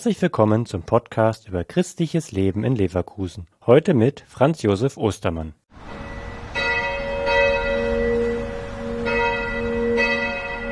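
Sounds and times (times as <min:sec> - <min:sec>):
speech: 0:00.0 - 0:06.0
church bells ringing in Catholic churches: 0:05.8 - 0:10.7.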